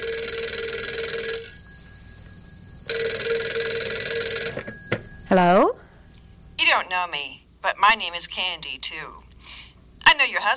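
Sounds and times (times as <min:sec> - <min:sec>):
telephone ringing with trilling bell tone: 0:00.0 - 0:07.1
speech: 0:05.3 - 0:05.8, 0:07.0 - 0:09.2, 0:10.1 - 0:10.5.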